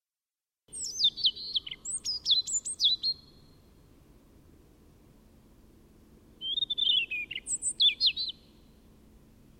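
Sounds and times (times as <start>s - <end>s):
European robin singing: 0.7s - 3.8s, 6.4s - 8.8s.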